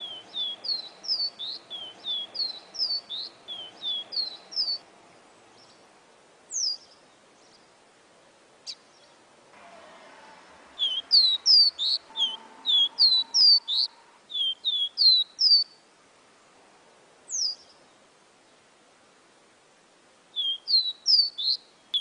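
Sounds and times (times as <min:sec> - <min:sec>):
seedeater whistling: 0:00.0 - 0:04.8, 0:10.8 - 0:15.7, 0:20.4 - 0:21.9.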